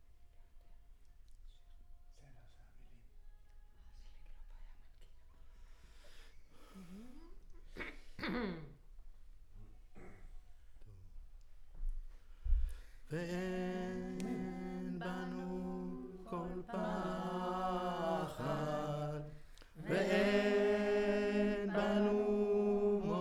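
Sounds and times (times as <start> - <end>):
choir recorded with center U47 microphone: 13.1 - 23.1.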